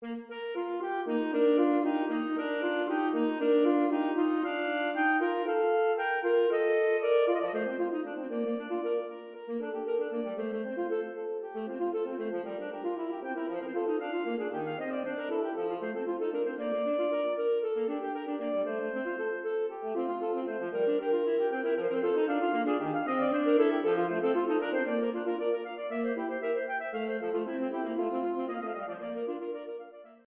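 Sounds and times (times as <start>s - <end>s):
instrumental duet allegro: 0.0s - 30.2s.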